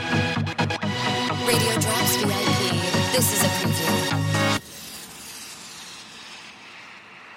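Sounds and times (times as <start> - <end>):
music beds: 0.0 - 4.6.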